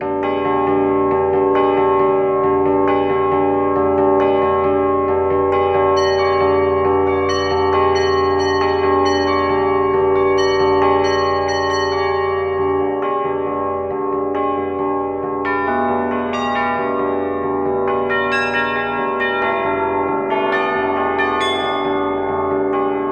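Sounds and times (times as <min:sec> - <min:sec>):
bells without octaves: 0:00.0 - 0:23.1.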